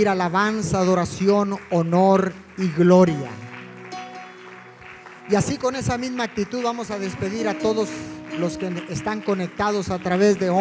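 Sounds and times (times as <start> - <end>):
speech: 0.0 - 3.4, 5.3 - 10.5
crowd applauding: 0.3 - 10.5
sustained musical tones: 3.1 - 10.5.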